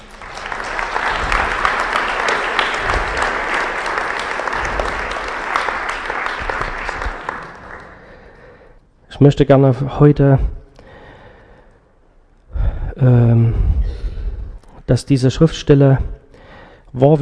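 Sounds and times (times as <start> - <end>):
audience applause: 0.0 - 8.6
speech: 9.2 - 10.6, 13.0 - 13.6, 14.9 - 16.2, 16.9 - 17.2.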